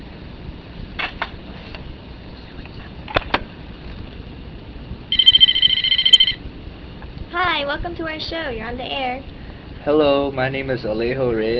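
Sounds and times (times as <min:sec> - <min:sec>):
low rumble: 0:01.9 - 0:09.8
telephone ringing with an electronic trill for an incoming call: 0:05.1 - 0:06.4
speech: 0:07.6 - 0:11.5.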